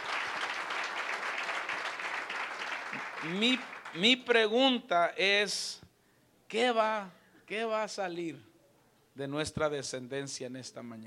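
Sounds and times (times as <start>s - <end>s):
audience applause: 0.0s - 4.0s
speech: 3.2s - 5.8s, 6.5s - 8.5s, 9.2s - 11.0s.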